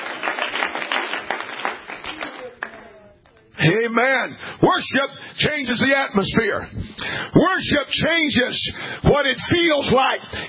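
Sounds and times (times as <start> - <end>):
audience clapping hands: 0.0 - 3.3
speech: 3.6 - 10.4.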